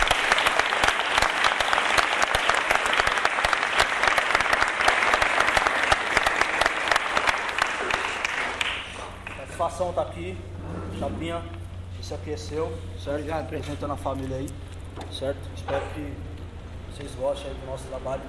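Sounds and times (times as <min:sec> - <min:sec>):
audience applause: 0:00.0 - 0:09.4
speech: 0:09.8 - 0:16.3, 0:17.0 - 0:18.2.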